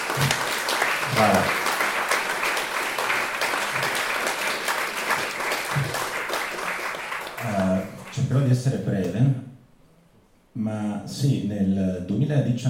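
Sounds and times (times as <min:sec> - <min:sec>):
audience applause: 0:00.0 - 0:08.6
speech: 0:01.2 - 0:01.6, 0:08.4 - 0:09.4, 0:11.1 - 0:12.6.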